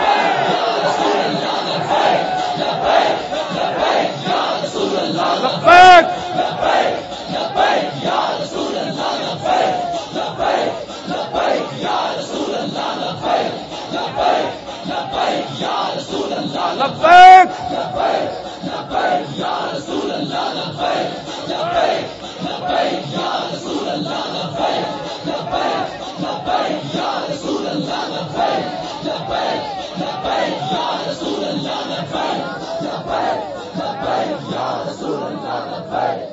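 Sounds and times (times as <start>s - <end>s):
crowd of young men at a religious gathering chanting slogans: 0.0s - 36.3s.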